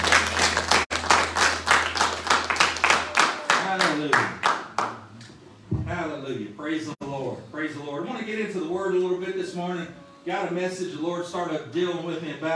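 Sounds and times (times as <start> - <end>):
audience clapping: 0.0 - 5.1
speech: 6.7 - 12.5.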